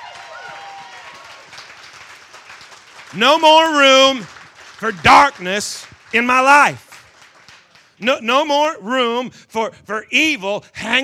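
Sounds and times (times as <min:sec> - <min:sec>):
audience clapping: 0:00.0 - 0:08.4
speech: 0:03.1 - 0:06.8, 0:08.0 - 0:11.0.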